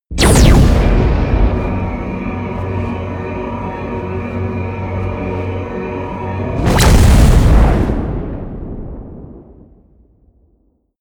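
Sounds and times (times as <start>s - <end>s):
promo synth pad: 0.2s - 8.0s.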